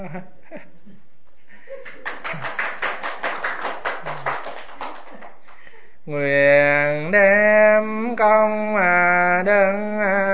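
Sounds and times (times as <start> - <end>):
speech: 0.0 - 1.0, 6.1 - 10.2
audience clapping: 1.8 - 5.7.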